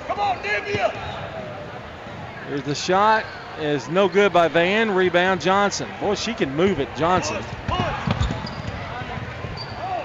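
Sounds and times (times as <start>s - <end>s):
crowd noise at a women's basketball game: 0.0s - 10.0s
speech: 0.3s - 1.2s, 2.5s - 7.6s
basketball bouncing during a women's basketball game: 7.1s - 9.8s.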